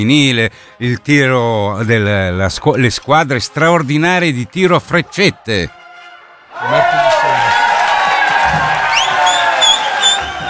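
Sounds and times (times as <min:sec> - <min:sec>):
speech: 0:00.0 - 0:05.8, 0:06.6 - 0:07.3
crowd cheering and applause: 0:05.9 - 0:10.4
whistles: 0:08.8 - 0:10.4.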